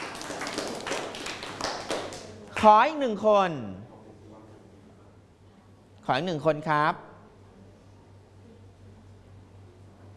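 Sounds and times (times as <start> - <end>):
scattered handclaps from students in a Thai classroom: 0.0 - 2.7
speech: 2.6 - 3.8, 6.1 - 7.1.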